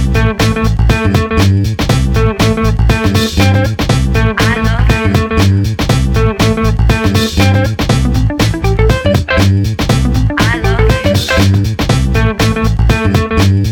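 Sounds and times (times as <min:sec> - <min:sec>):
guitar playing: 0:00.1 - 0:13.5.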